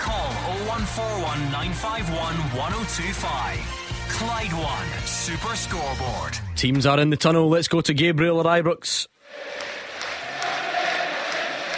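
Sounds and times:
crowd cheering and chanting: 0.0s - 3.4s, 9.3s - 11.7s
speech: 0.8s - 9.7s
packed football stadium crowd roaring: 9.3s - 11.7s.

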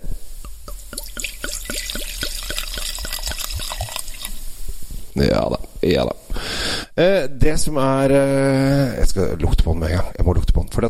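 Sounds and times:
orange wine poured into a glass: 0.4s - 4.5s
speech: 5.2s - 6.2s, 7.0s - 10.8s.

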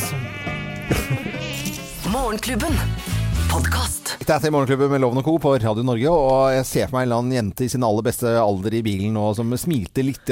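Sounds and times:
malaria mosquito buzzing: 0.0s - 3.7s
speech: 2.1s - 10.2s.

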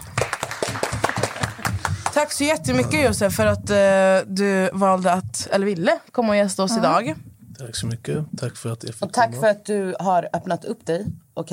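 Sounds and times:
small group applause: 0.0s - 2.5s
speech: 2.2s - 11.5s.

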